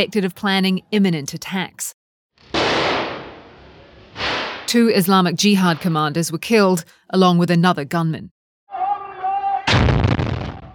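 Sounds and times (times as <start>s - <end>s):
speech: 0.0s - 2.0s, 4.7s - 8.4s
shoulder-fired rocket launcher firing in military footage: 2.4s - 4.7s, 9.7s - 10.7s.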